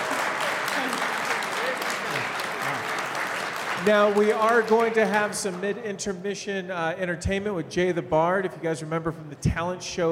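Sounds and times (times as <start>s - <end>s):
audience applause: 0.0s - 5.5s
speech: 3.8s - 10.1s.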